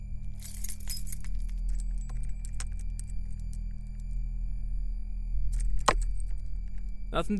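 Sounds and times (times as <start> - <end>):
low hum: 0.0 - 7.3
keys jingling: 0.4 - 3.6, 5.5 - 6.9.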